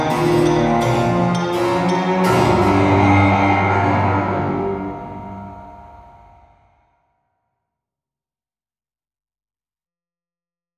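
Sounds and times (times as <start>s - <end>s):
haunted harpsichord: 0.0s - 6.6s.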